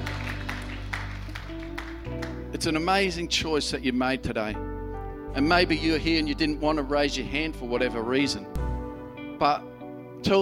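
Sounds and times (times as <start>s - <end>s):
crowd applauding: 0.0s - 2.6s
speech: 2.6s - 4.7s, 5.3s - 8.5s, 9.4s - 10.4s.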